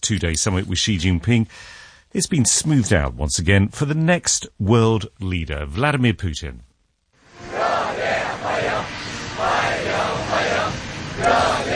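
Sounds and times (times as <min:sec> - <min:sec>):
speech: 0:00.0 - 0:06.7
young people chanting in unison in Beijing: 0:07.4 - 0:11.7.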